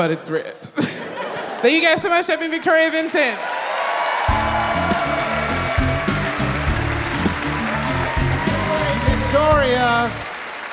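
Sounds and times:
speech: 0.0 - 0.9, 1.6 - 3.5, 9.4 - 10.2
audience applause: 3.4 - 10.7.

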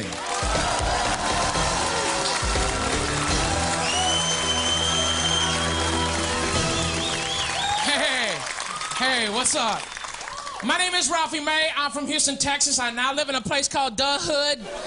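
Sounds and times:
audience applause: 0.0 - 11.1
whistles: 3.8 - 7.9, 9.8 - 10.2
speech: 9.2 - 9.9, 10.6 - 14.8.

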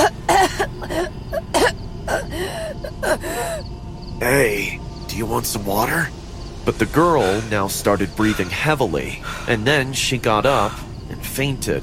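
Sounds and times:
girl coughing: 0.0 - 3.4
speech: 5.3 - 11.8.

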